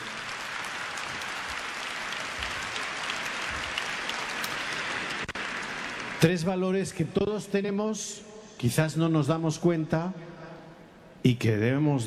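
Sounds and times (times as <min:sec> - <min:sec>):
audience clapping: 0:00.0 - 0:06.7
speech: 0:06.2 - 0:10.3, 0:11.2 - 0:12.0.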